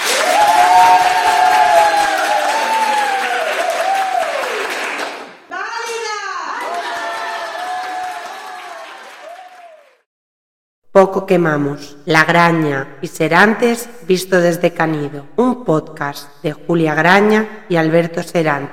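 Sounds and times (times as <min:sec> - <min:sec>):
whoops: 0:00.0 - 0:04.7, 0:06.2 - 0:10.0
audience applause: 0:00.0 - 0:05.4, 0:06.6 - 0:10.0
speech: 0:11.0 - 0:18.7.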